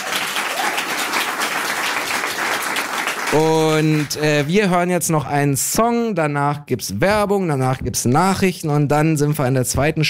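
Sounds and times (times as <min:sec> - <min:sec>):
applause: 0:00.0 - 0:04.6
speech: 0:03.3 - 0:10.0.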